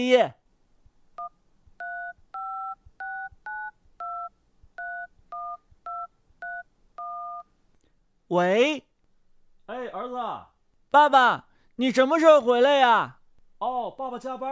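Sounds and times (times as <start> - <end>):
speech: 0.0 - 0.4, 8.3 - 8.9, 9.7 - 14.4
touch-tone beeps dialing a telephone number: 1.2 - 7.5.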